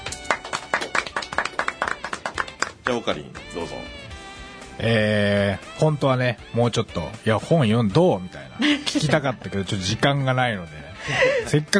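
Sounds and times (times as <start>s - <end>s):
audience clapping: 0.0s - 3.5s
speech: 2.9s - 4.0s, 4.8s - 11.7s.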